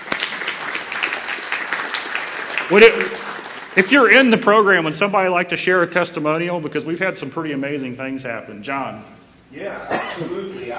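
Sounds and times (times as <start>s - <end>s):
audience applause: 0.0s - 4.3s
speech: 2.7s - 10.7s.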